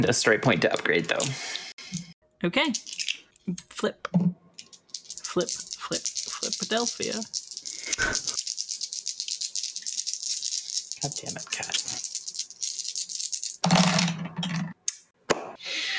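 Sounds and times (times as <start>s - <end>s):
speech: 0.0s - 1.6s, 2.4s - 4.4s, 5.4s - 8.3s, 11.0s - 12.0s
dice rolling: 2.7s - 3.2s, 4.6s - 14.2s.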